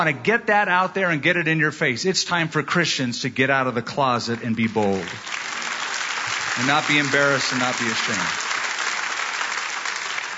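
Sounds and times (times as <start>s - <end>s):
speech: 0.0s - 5.4s, 6.6s - 8.4s
audience applause: 4.4s - 10.3s.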